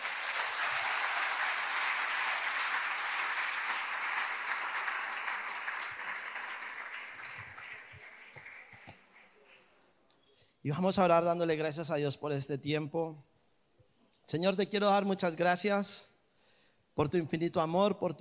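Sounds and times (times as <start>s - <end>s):
audience applauding loudly: 0.0s - 9.8s
speech: 10.6s - 13.3s, 14.3s - 16.1s, 17.0s - 18.2s.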